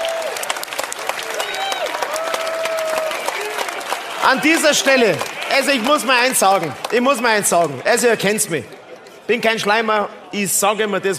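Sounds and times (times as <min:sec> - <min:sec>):
scattered cheers: 0:00.0 - 0:07.6
crowd applause: 0:00.0 - 0:08.5
speech: 0:04.2 - 0:11.1.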